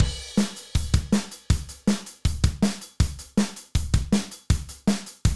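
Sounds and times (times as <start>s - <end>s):
hi-hat: 0.0s - 5.2s.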